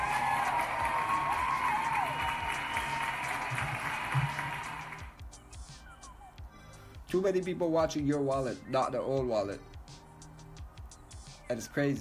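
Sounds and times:
cheers and whistles: 0:00.0 - 0:05.1
crowd applauding: 0:00.0 - 0:05.1
speech: 0:07.2 - 0:09.7, 0:11.5 - 0:11.9.

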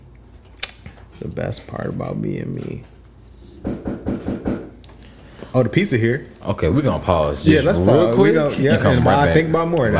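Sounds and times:
speech: 0:01.4 - 0:02.9, 0:05.5 - 0:09.9
knocking on a door: 0:03.6 - 0:04.8.

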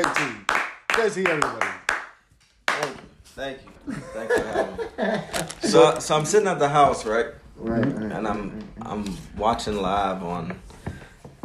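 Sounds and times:
round of applause: 0:00.0 - 0:02.9
speech: 0:01.0 - 0:01.8, 0:02.8 - 0:10.7
laughter: 0:03.8 - 0:06.4.

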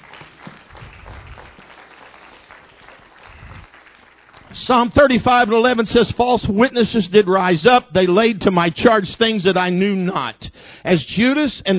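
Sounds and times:
audience hand clapping: 0:00.0 - 0:05.7
speech: 0:04.6 - 0:11.7.

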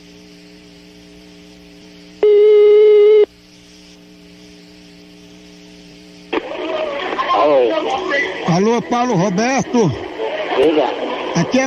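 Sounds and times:
low steady line hum: 0:00.0 - 0:11.6
line crackling: 0:01.1 - 0:08.6
telephone tone on a prank call: 0:02.2 - 0:03.3
speech: 0:08.6 - 0:10.0, 0:10.6 - 0:11.6.

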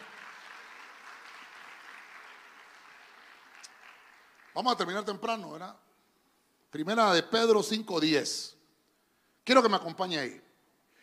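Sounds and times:
audience applauding: 0:00.0 - 0:05.3
speech: 0:04.6 - 0:05.9, 0:06.7 - 0:08.6, 0:09.5 - 0:10.5.

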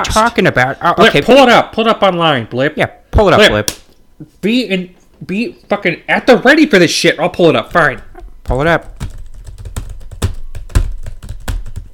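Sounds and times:
speech: 0:00.0 - 0:09.0
fast typing on a computer keyboard: 0:08.8 - 0:11.9.

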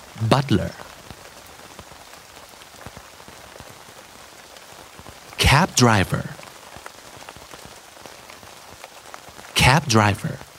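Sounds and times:
rain falling: 0:00.0 - 0:10.5
speech: 0:00.2 - 0:00.9, 0:05.6 - 0:06.4, 0:09.7 - 0:10.5.

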